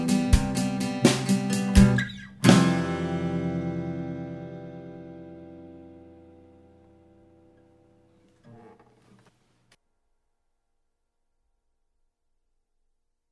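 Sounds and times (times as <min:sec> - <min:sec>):
healthy old drums: 0:00.0 - 0:04.1.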